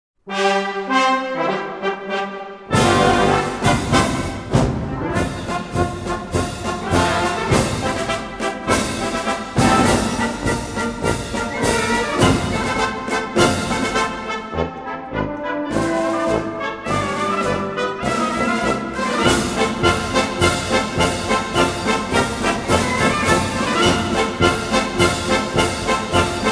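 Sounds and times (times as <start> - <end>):
march music: 0.2 - 26.4.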